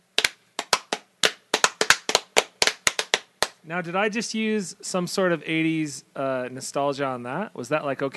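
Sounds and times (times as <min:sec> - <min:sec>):
hand claps: 0:00.1 - 0:03.6
speech: 0:03.6 - 0:08.1.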